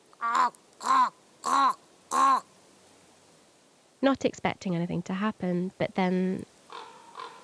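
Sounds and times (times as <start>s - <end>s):
raven calls: 0.1s - 2.5s, 6.7s - 7.4s
speech: 0.2s - 1.0s, 4.0s - 6.5s.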